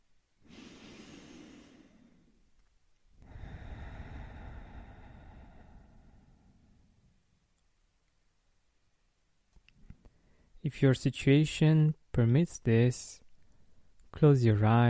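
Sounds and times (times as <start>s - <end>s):
deep breath in and out: 0.4s - 2.5s, 3.2s - 7.2s, 10.1s - 10.6s
speech: 10.6s - 13.2s, 14.2s - 14.8s.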